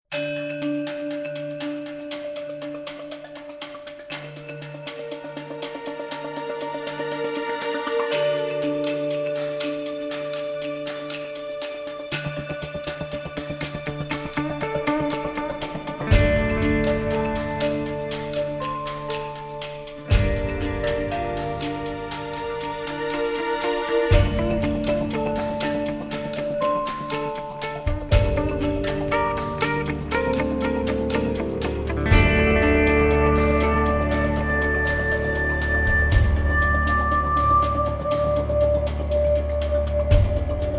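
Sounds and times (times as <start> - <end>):
suspense music: 0.1 - 40.7.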